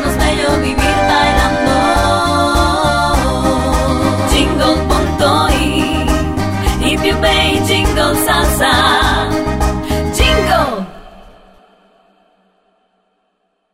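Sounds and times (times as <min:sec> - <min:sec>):
salsa music on radio: 0:00.1 - 0:10.4.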